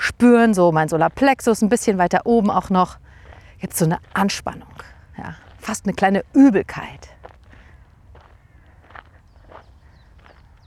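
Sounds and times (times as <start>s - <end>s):
steady low background: 0.0s - 10.6s
speech: 0.1s - 7.2s
footsteps during a walk: 2.8s - 10.6s.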